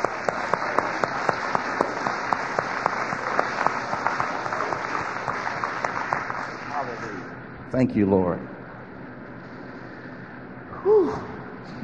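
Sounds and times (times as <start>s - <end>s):
steady hand clapping from a crowd: 0.0s - 7.3s
speech: 7.7s - 8.6s.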